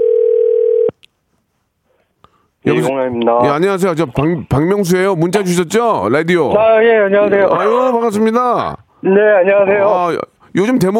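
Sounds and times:
low-pitched telephone ringing tone: 0:00.0 - 0:00.9
speech: 0:02.6 - 0:10.9.

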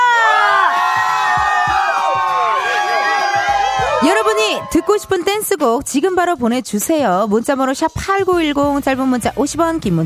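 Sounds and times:
crowd cheering and shouting: 0:00.0 - 0:05.9
speech: 0:04.3 - 0:10.0.

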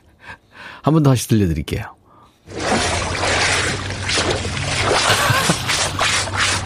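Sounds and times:
speech: 0:00.8 - 0:02.0
freshwater clams being washed: 0:02.5 - 0:06.6.

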